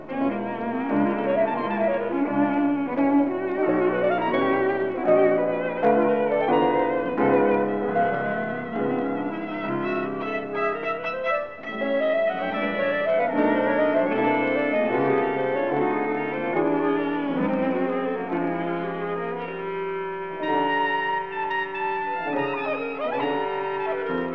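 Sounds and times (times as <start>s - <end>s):
verbunkos recruiting dance music: 0.0s - 24.3s.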